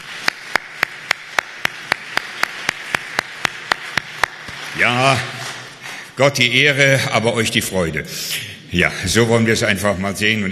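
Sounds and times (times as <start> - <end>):
audience applause: 0.0 - 5.0
speech: 4.8 - 5.4, 6.2 - 10.4.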